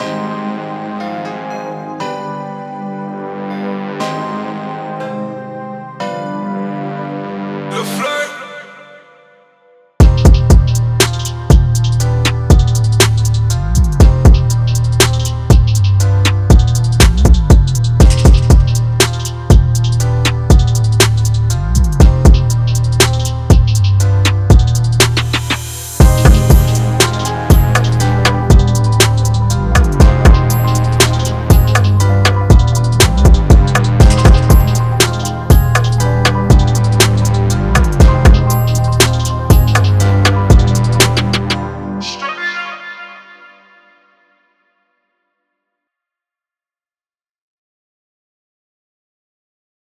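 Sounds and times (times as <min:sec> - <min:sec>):
music beat: 0:10.0 - 0:42.3.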